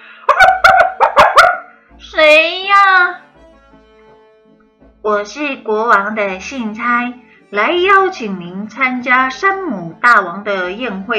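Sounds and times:
two dogs barking furiously: 0:00.3 - 0:01.7
speech: 0:05.1 - 0:11.1.

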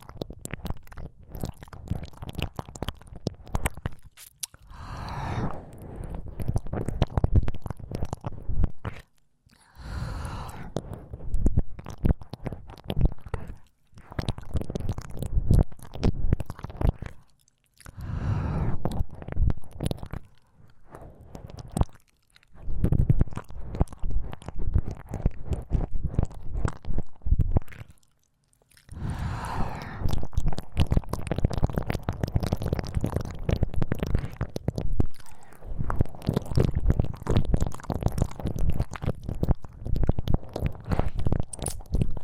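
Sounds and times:
ear licking wet squishing and smacking: 0:00.0 - 0:42.2
breathy swells: 0:04.6 - 0:06.6, 0:09.5 - 0:11.6, 0:17.0 - 0:19.3, 0:20.2 - 0:21.8, 0:28.9 - 0:30.3, 0:35.2 - 0:36.2.

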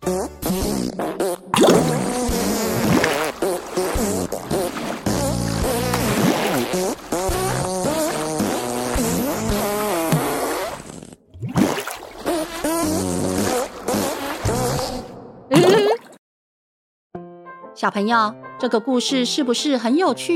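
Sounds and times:
farting while taking a bath: 0:00.0 - 0:16.2
speech: 0:17.8 - 0:20.3.

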